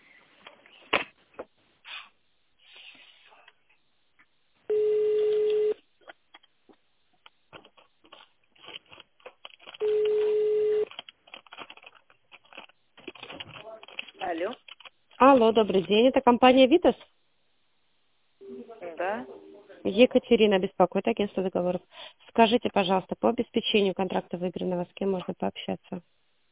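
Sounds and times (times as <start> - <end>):
phone line tones: 4.7 - 5.8, 9.8 - 10.9
touch-tone dialing: 9.8 - 10.9
speech: 15.2 - 17.1, 20.0 - 26.2.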